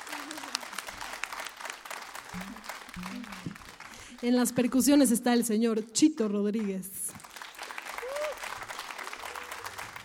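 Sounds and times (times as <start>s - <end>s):
audience applause: 0.0s - 4.3s, 7.1s - 10.0s
speech: 2.3s - 7.0s.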